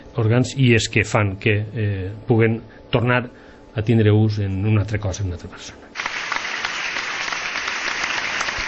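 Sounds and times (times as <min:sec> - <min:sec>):
speech: 0:00.2 - 0:06.0
audience applause for organ donors and donation staff: 0:06.0 - 0:08.6.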